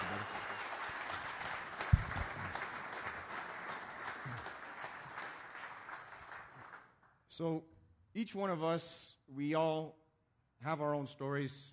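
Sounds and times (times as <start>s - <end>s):
audience applause: 0.0s - 6.8s
speech: 7.4s - 10.0s, 10.6s - 11.7s.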